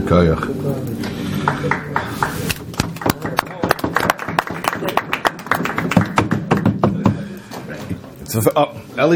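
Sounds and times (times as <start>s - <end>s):
speech: 0.1s - 0.9s, 8.4s - 9.1s
group of people clapping: 1.0s - 7.9s.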